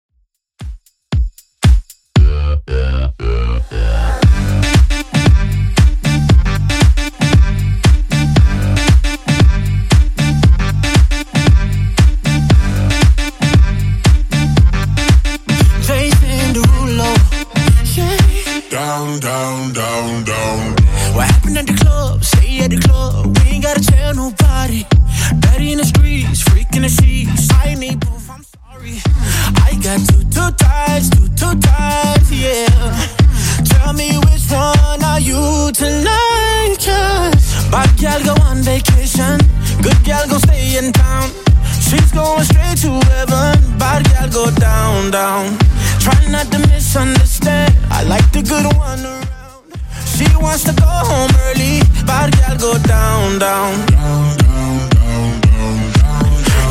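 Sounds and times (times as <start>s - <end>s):
Top40 DJ-friendly dance track at 116 BPM: 0.6s - 56.6s.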